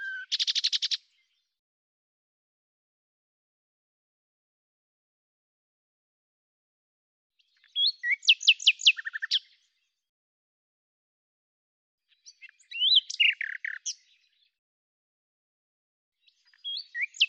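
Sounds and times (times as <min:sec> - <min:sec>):
common nightingale singing: 0:00.0 - 0:01.4, 0:07.4 - 0:09.6, 0:12.1 - 0:14.4, 0:16.2 - 0:17.2.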